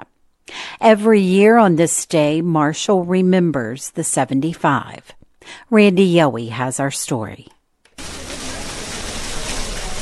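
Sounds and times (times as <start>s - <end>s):
speech: 0.8s - 7.6s
splashing Marshall Memorial Fountain water: 8.0s - 9.9s.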